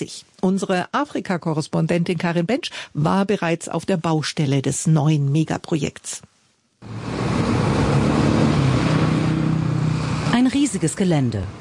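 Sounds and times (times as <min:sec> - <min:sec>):
speech: 0:00.0 - 0:07.3, 0:10.4 - 0:11.5
construction machinery levelling ground: 0:06.8 - 0:10.7
trucks transporting stones and gravel: 0:06.8 - 0:11.5.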